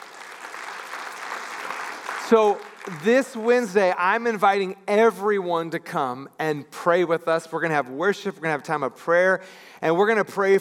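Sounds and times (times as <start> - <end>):
audience clapping: 0.0 - 4.3
speech: 2.3 - 10.5.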